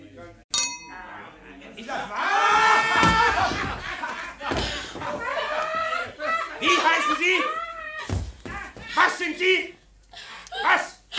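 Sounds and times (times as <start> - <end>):
glasses clinking in a toast: 0.5 - 1.2
laughter: 2.1 - 9.1.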